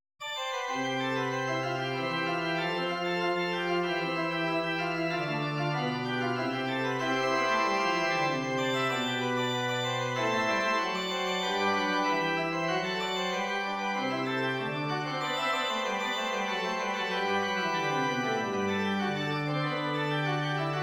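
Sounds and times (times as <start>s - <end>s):
prelude piece: 0.2s - 20.8s.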